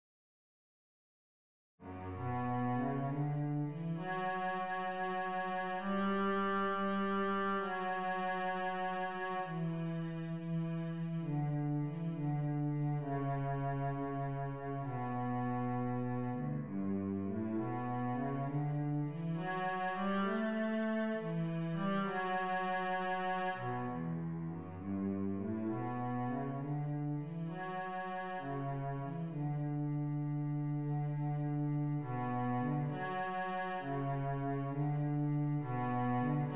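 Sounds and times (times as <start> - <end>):
cello: 1.8 - 36.5.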